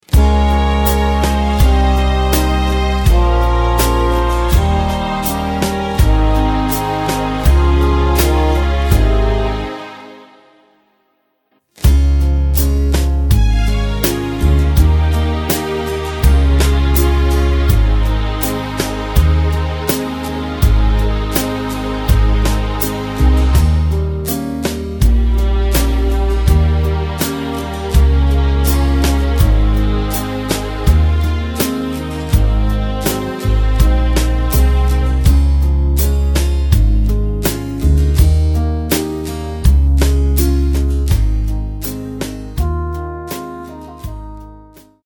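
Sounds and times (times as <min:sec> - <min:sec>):
backing track without backing vocals: 0:00.0 - 0:11.0, 0:11.8 - 0:45.0.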